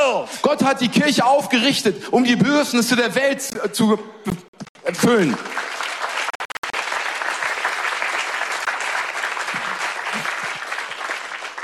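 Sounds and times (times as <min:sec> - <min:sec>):
speech: 0:00.1 - 0:05.7
audience applause: 0:04.8 - 0:11.6.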